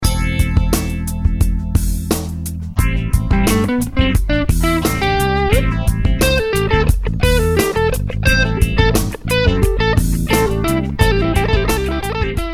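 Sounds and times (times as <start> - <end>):
funk music: 0.0 - 12.5.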